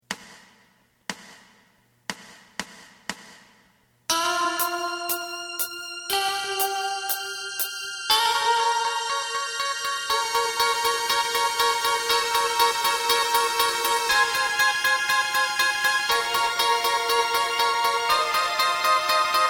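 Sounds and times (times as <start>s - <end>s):
bass: 4.1s - 19.4s.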